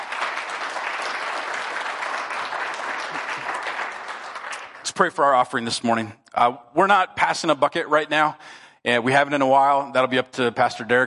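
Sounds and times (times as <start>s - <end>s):
congregation applauding visitors during a Sunday church service: 0.0s - 5.6s
speech: 5.0s - 11.0s.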